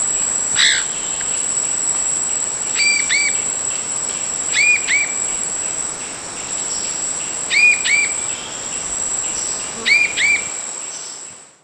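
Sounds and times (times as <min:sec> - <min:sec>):
bird whistled notes: 0:04.5 - 0:05.2, 0:07.5 - 0:08.2, 0:09.9 - 0:10.5.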